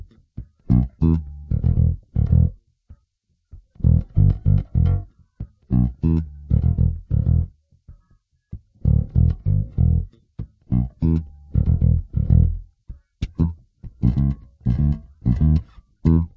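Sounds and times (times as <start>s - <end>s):
melodic wah wah bass sample: 0.7s - 2.6s, 3.8s - 5.1s, 5.7s - 7.5s, 8.8s - 10.1s, 10.7s - 12.6s, 13.2s - 16.3s.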